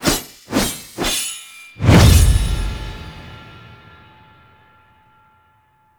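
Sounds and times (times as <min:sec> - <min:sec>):
sword swing: 0:00.0 - 0:03.5.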